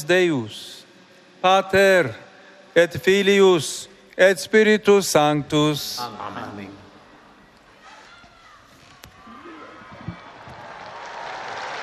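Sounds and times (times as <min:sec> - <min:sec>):
speech: 0:00.0 - 0:00.8, 0:01.4 - 0:02.2, 0:02.8 - 0:06.8
crowd applauding after papal blessing: 0:09.8 - 0:11.8.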